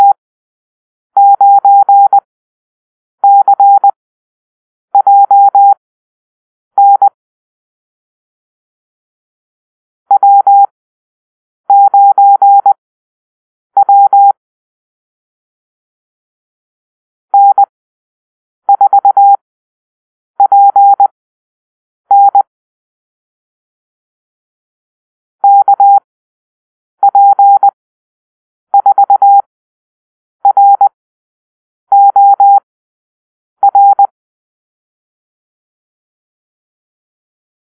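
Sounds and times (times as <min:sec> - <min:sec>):
morse code call-sign drill: 0:01.2 - 0:02.2, 0:03.2 - 0:04.0, 0:05.0 - 0:05.8, 0:06.8 - 0:07.2, 0:10.1 - 0:10.7, 0:11.7 - 0:12.8, 0:13.8 - 0:14.4, 0:17.4 - 0:17.7, 0:18.7 - 0:19.4, 0:20.4 - 0:21.1, 0:22.1 - 0:22.5, 0:25.4 - 0:26.1, 0:27.0 - 0:27.8, 0:28.8 - 0:29.5, 0:30.4 - 0:30.9, 0:31.9 - 0:32.6, 0:33.6 - 0:34.1.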